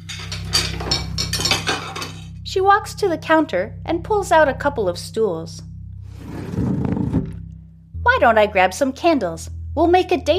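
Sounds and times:
metal utensils clattering as grabbed from a kitchen drawer: 0.0s - 2.4s
speech: 2.5s - 5.7s, 8.2s - 10.3s
low hum: 3.5s - 9.8s.

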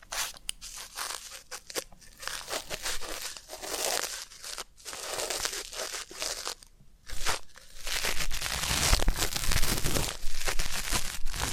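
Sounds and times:
ASMR ear cleaning crinkling and scratching: 0.0s - 11.5s.

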